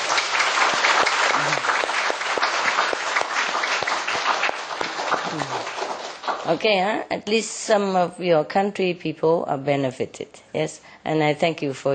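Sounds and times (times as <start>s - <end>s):
audience applause: 0.0s - 6.6s
speech: 6.5s - 11.9s.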